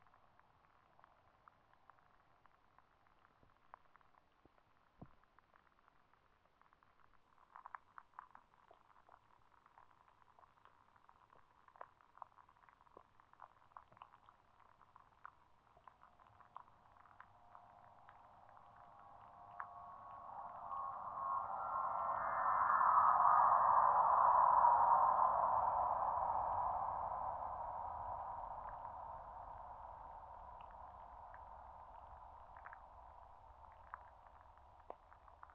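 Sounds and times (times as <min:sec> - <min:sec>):
airplane noise: 0:17.5 - 0:31.2.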